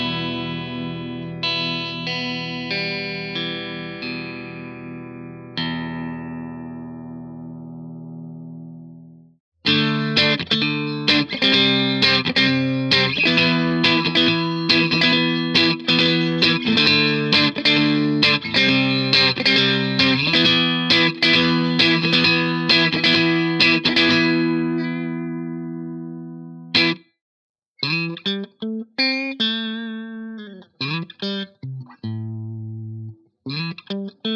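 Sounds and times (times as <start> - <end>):
Telecaster electric guitar on middle pickup: 0.0 - 27.1, 27.8 - 34.3.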